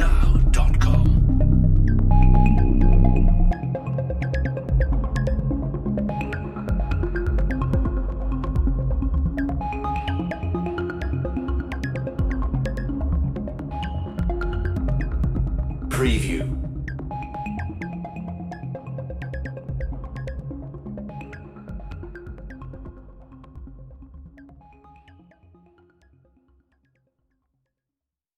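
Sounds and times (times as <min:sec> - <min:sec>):
virus underscore music: 0:00.0 - 0:11.4, 0:12.0 - 0:18.7.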